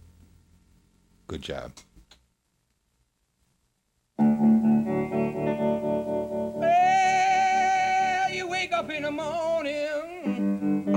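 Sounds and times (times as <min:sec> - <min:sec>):
speech: 0:01.3 - 0:01.9
electric music from a vinyl LP record: 0:04.2 - 0:10.9.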